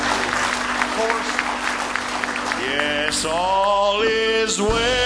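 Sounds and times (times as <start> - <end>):
church congregation clapping hands in praise: 0.0 - 4.0
speech: 3.2 - 4.9.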